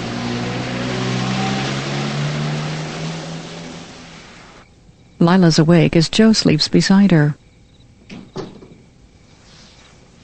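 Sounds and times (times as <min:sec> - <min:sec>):
car driving away: 0:00.0 - 0:04.6
speech: 0:05.2 - 0:07.4.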